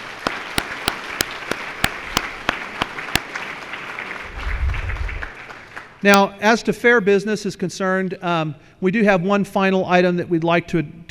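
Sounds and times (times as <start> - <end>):
round of applause: 0.0 - 6.0
sharp evenly spaced claps: 0.0 - 6.0
speech: 6.0 - 11.0.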